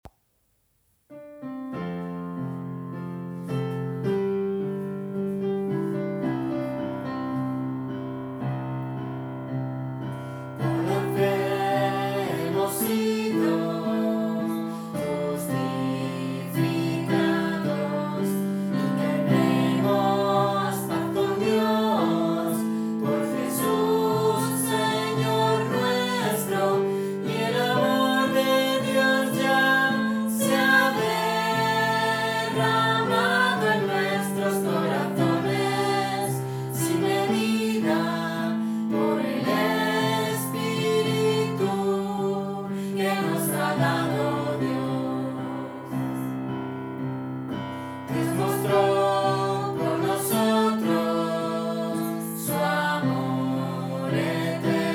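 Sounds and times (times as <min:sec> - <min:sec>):
piano: 0:01.1 - 0:54.9.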